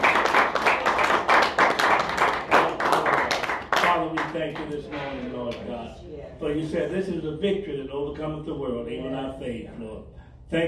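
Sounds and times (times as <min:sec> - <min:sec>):
audience clapping hands in praise: 0:00.0 - 0:04.9
speech: 0:04.4 - 0:10.6.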